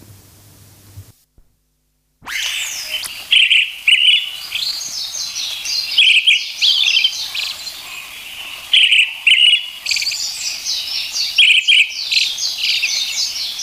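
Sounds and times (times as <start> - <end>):
brown-headed thrush singing: 2.3 - 13.6.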